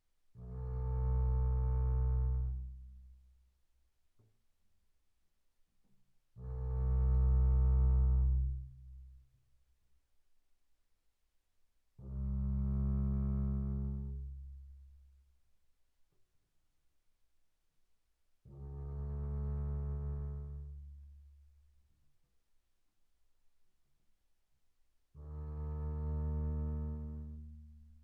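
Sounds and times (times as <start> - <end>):
double bass bowed arco on the E string, pianissimo: 0.4 - 3.0, 6.4 - 9.2, 12.0 - 14.7, 18.5 - 21.4, 25.2 - 27.9.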